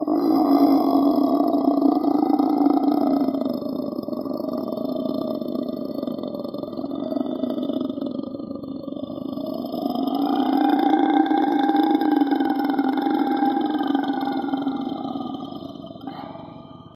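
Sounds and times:
killer roar: 0.0s - 16.9s.

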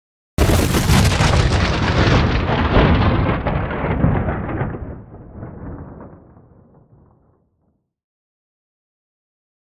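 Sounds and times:
artificial thunderclaps with reverb: 0.4s - 7.7s.

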